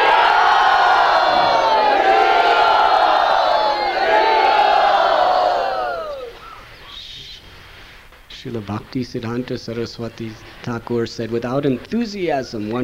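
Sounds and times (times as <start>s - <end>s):
audience cheering to welcome a speaker: 0.0s - 6.4s
speech: 8.6s - 12.8s.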